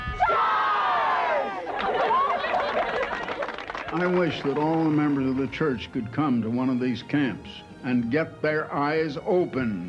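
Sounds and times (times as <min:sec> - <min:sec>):
crowd of children yelling: 0:00.2 - 0:02.8
laughter: 0:01.5 - 0:05.2
speech: 0:03.9 - 0:09.8.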